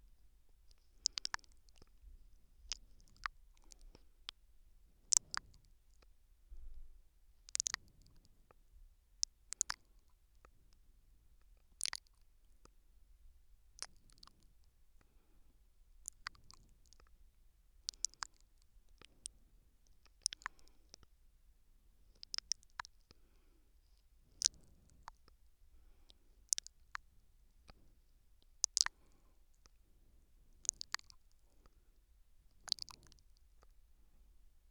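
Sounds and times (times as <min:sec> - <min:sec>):
soft nibbling on the left ear: 0:00.6 - 0:02.0, 0:02.5 - 0:04.4, 0:05.1 - 0:06.1, 0:07.5 - 0:08.2, 0:09.2 - 0:09.8, 0:11.8 - 0:12.3, 0:13.8 - 0:14.5, 0:16.0 - 0:17.1, 0:17.9 - 0:21.1, 0:22.1 - 0:23.5, 0:24.3 - 0:27.8, 0:28.6 - 0:29.8, 0:30.6 - 0:31.7, 0:32.5 - 0:33.8.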